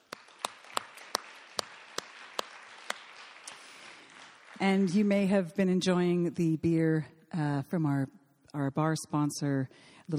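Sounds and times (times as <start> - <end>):
audience applause: 0.0 - 5.0
speech: 4.6 - 10.1.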